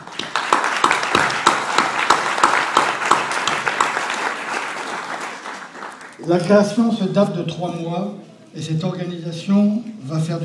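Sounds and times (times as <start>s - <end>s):
audience applause: 0.0s - 6.4s
speech: 6.3s - 10.4s.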